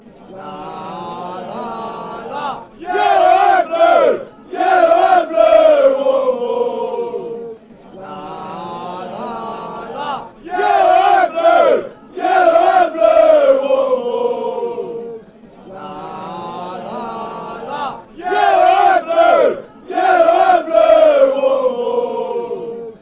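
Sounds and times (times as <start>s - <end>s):
fans chanting: 0.0s - 23.0s.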